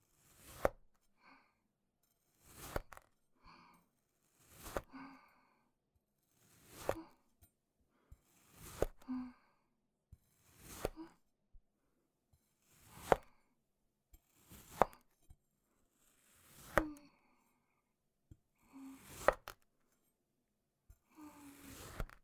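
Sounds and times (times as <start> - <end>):
cutting sand clay: 0.2 - 0.8, 2.4 - 3.2, 4.2 - 5.0, 6.2 - 7.1, 8.3 - 9.0, 10.3 - 11.2, 12.6 - 13.4, 14.2 - 15.2, 15.9 - 17.0, 18.8 - 19.7, 21.2 - 22.2.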